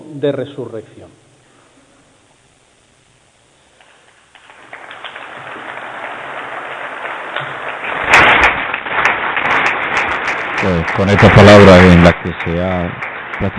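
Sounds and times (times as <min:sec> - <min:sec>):
speech: 0:00.1 - 0:01.2, 0:10.7 - 0:13.5
audience applause: 0:03.8 - 0:13.5.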